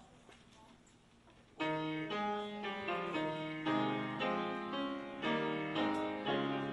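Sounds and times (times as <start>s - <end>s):
brass instruments: 1.6s - 6.7s
piano: 1.6s - 6.7s.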